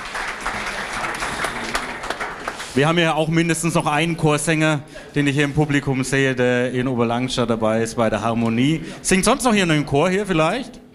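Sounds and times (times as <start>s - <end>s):
big audience applause: 0.0s - 3.1s
speech: 2.8s - 10.8s.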